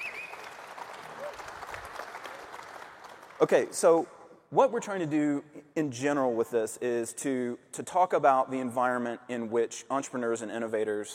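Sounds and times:
audience round of applause: 0.0 - 3.6
speech: 3.4 - 11.1.

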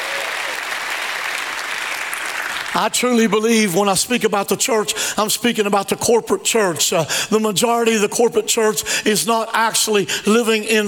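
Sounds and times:
audience hand clapping: 0.0 - 3.5
speech: 2.7 - 10.8.

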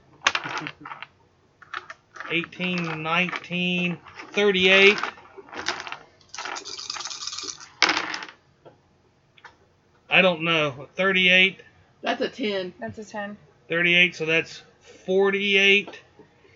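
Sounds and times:
dice clattering on a table during a tabletop roleplaying game: 0.2 - 8.4
speech: 0.6 - 1.0, 2.3 - 5.1, 10.2 - 16.0.

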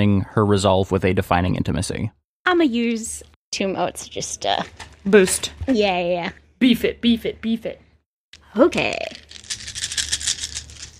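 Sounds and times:
speech: 0.0 - 7.8, 8.5 - 9.2
many dice rattling in cupped hands: 8.8 - 10.9.

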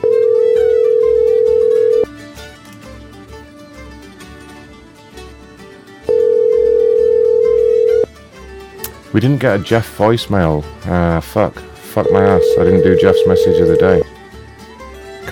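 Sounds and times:
telephone ringing tone while calling a number: 0.0 - 2.1, 6.1 - 8.1, 12.0 - 14.0
speech: 9.2 - 14.1.

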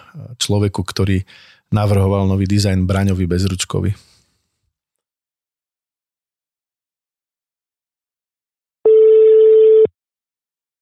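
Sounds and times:
speech: 0.2 - 4.1
outgoing telephone call ringing tone: 8.9 - 9.9.

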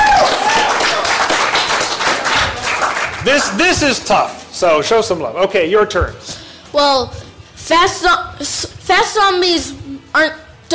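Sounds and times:
round of applause: 0.0 - 3.8
speech: 3.4 - 10.7.

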